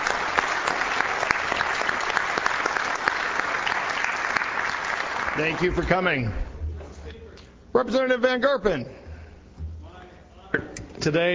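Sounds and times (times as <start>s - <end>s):
audience clapping to welcome guests in a legislative chamber: 0.0s - 6.3s
speech: 5.4s - 6.5s, 7.7s - 9.0s, 11.0s - 11.3s.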